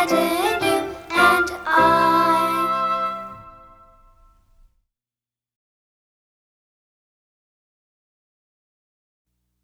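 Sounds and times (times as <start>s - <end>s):
song: 0.0s - 4.5s.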